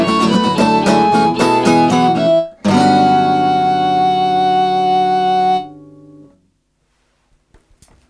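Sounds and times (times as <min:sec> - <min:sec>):
original Irish traditional music: 0:00.0 - 0:05.9.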